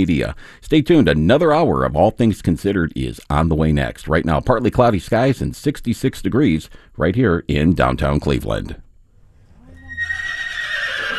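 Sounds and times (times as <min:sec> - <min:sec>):
speech: 0:00.0 - 0:08.8
horse whinnying in a barn in North Ridgeville: 0:09.5 - 0:11.1.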